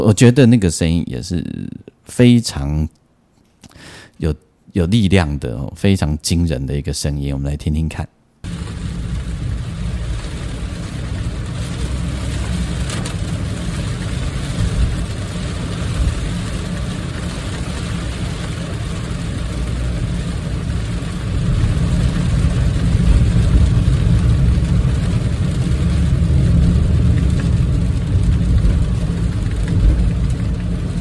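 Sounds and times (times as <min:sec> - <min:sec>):
speech: 0:00.0 - 0:03.0, 0:03.7 - 0:08.7
heavy rain on windows and roof of moving car: 0:08.4 - 0:31.0
road and engine rumble: 0:08.4 - 0:31.0.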